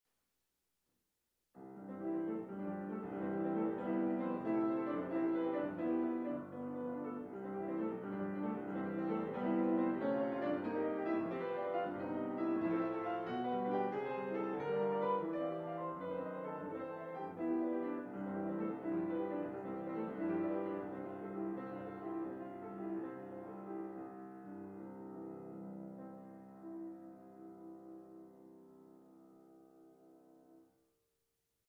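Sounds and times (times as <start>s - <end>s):
piano: 1.6s - 30.8s.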